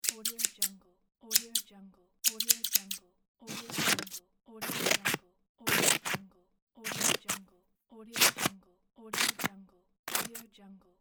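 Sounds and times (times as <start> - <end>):
scissors cutting: 0.0 - 0.7, 1.3 - 6.2, 6.8 - 7.4, 8.2 - 8.5, 9.2 - 9.5, 10.1 - 10.4.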